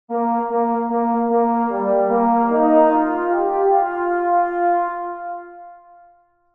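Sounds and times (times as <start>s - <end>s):
trumpet: 0.1s - 6.4s.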